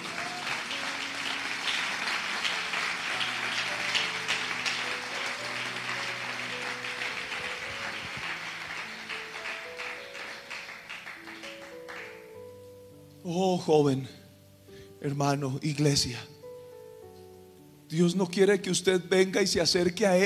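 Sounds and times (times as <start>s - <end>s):
large crowd applauding: 0.0s - 12.4s
soft organ or keyboard chords: 0.0s - 20.2s
speech: 13.3s - 14.2s, 15.0s - 16.3s, 17.9s - 20.2s.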